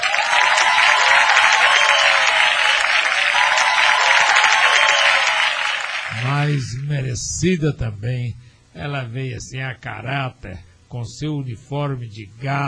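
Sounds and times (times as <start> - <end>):
audience applause: 0.0 - 6.6
speech: 6.6 - 12.6.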